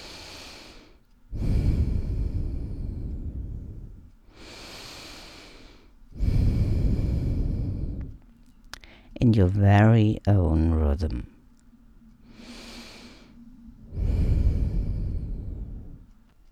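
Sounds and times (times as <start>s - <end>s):
slow deep breathing during a guided breathing exercise: 0.0s - 9.2s, 11.2s - 16.5s
speech: 9.2s - 11.4s.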